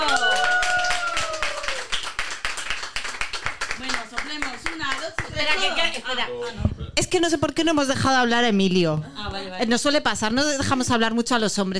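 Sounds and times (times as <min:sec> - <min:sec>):
applause: 0:00.0 - 0:05.8
speech: 0:05.1 - 0:11.7.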